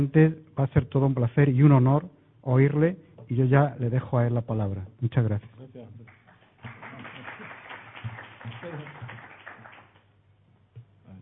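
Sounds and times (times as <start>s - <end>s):
speech: 0.0s - 6.1s
audience applause: 6.1s - 10.1s.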